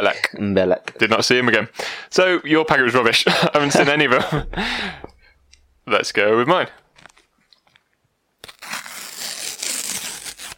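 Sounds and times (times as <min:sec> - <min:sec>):
speech: 0:00.0 - 0:05.1, 0:05.9 - 0:06.8
laughter: 0:03.1 - 0:04.8
sticker packet torn open along its side: 0:08.4 - 0:10.5.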